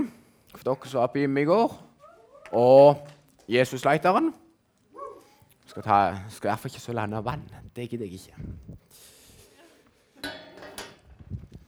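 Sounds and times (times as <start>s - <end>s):
speech: 0.6s - 1.9s, 2.5s - 4.4s, 5.7s - 9.1s
soft shuffling: 1.6s - 10.2s
drinking glasses being handled: 10.2s - 11.0s.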